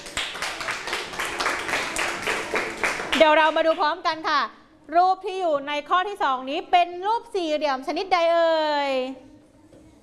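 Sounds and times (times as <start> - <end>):
classroom clapping: 0.0 - 3.8
speech: 3.2 - 9.3.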